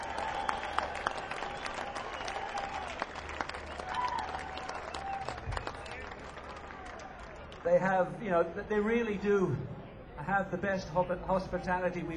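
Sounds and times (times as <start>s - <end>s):
crowd applause for the crew: 0.0s - 7.8s
speech: 7.6s - 12.1s.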